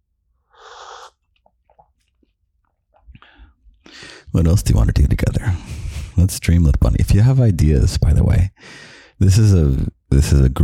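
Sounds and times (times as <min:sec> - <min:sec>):
sipping tea: 0:00.5 - 0:03.5
speech: 0:04.4 - 0:10.6.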